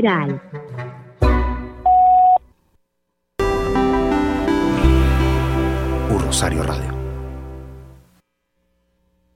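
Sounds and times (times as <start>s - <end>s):
speech: 0.0s - 0.9s, 6.3s - 6.9s
answering machine beep before recording a message: 1.9s - 2.4s
sustained harmonic tone: 3.4s - 8.0s.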